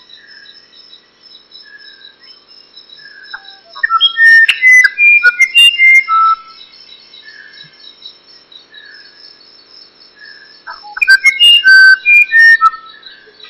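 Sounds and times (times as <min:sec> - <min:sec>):
musician wren whistling and chattering song: 0:03.3 - 0:06.6, 0:10.7 - 0:13.4.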